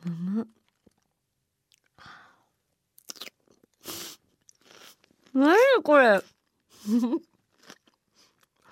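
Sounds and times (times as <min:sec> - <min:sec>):
crunching on fresh highland vegetables from a cutlet bento: 0:03.0 - 0:03.8, 0:04.4 - 0:05.3, 0:07.4 - 0:08.6
speech: 0:05.4 - 0:06.3, 0:06.9 - 0:07.3.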